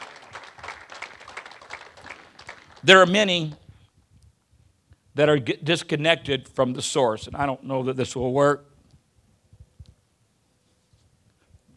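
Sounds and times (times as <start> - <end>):
audience clapping hands in praise: 0.0 - 3.2
speech: 2.8 - 3.6, 5.2 - 8.7.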